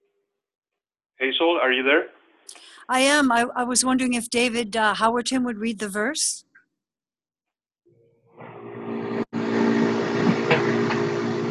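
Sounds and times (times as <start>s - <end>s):
speech: 1.2s - 6.4s
car engine noise in background: 8.4s - 11.5s.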